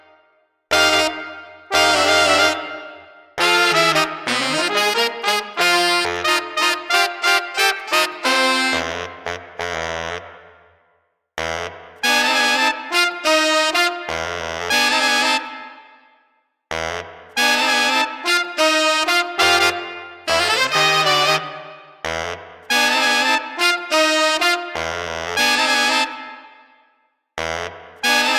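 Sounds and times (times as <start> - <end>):
funky street brass combo playing without drums: 0.7 - 10.4, 12.0 - 15.6, 17.4 - 26.3, 28.0 - 28.3.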